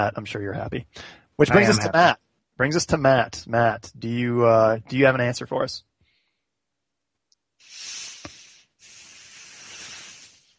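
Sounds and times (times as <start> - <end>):
speech: 0.0 - 5.9
breathing into a microphone: 0.9 - 1.4, 6.0 - 6.5, 7.6 - 10.5.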